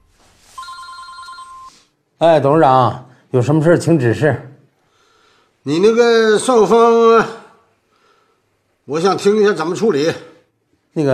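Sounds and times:
faint noise: 0:00.0 - 0:11.1
telephone ringing with electronic bell tone: 0:00.5 - 0:02.0
speech: 0:02.2 - 0:04.5, 0:05.6 - 0:07.4, 0:08.9 - 0:10.3, 0:10.9 - 0:11.1.

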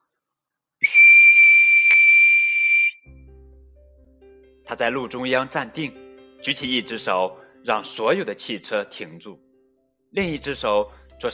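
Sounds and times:
police whistle blowing: 0:00.8 - 0:03.1
speech: 0:04.7 - 0:09.4, 0:10.1 - 0:11.3.

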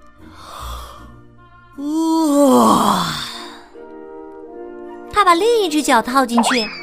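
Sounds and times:
speech: 0:01.8 - 0:02.1, 0:05.2 - 0:06.8
person imitating a yawn: 0:01.8 - 0:03.6.

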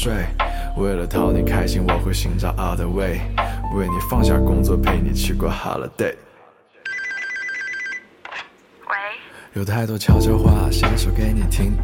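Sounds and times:
speech: 0:00.0 - 0:06.3, 0:09.5 - 0:11.8
telephone ringing: 0:06.9 - 0:08.2.

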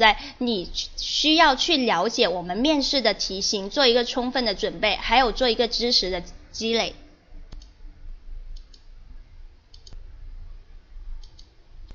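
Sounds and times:
speech: 0:00.0 - 0:07.0
low rumble: 0:00.0 - 0:11.9
computer mouse clicking: 0:07.5 - 0:07.7, 0:08.5 - 0:08.9, 0:09.7 - 0:10.0, 0:11.2 - 0:11.9.

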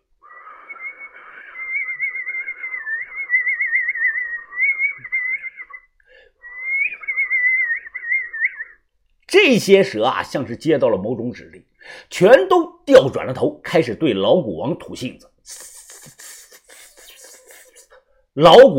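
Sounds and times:
human whistling: 0:00.2 - 0:08.8
speech: 0:09.5 - 0:15.7, 0:18.4 - 0:18.7.

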